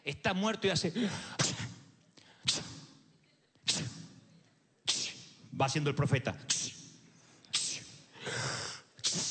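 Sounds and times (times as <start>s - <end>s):
speech: 0.0s - 1.5s, 5.6s - 6.7s
person imitating sneezing: 1.2s - 1.8s, 2.4s - 3.0s, 3.6s - 4.1s, 4.9s - 5.4s, 7.5s - 9.2s.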